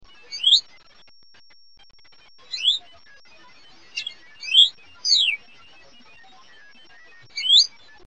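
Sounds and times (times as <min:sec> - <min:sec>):
Hutton's vireo calling: 0:00.3 - 0:00.6, 0:02.5 - 0:02.8, 0:03.9 - 0:05.4, 0:07.3 - 0:07.7.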